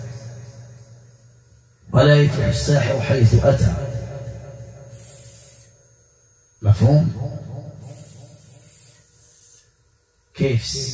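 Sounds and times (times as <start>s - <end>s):
speech: 2.0s - 3.9s, 6.8s - 7.3s, 10.4s - 10.9s
person imitating a snake with an airy hiss: 4.9s - 5.8s, 7.8s - 9.8s.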